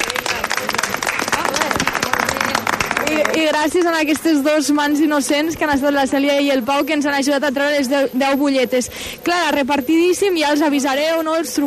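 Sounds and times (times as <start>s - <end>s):
crowd applauding: 0.0s - 4.5s
speech: 3.4s - 11.6s.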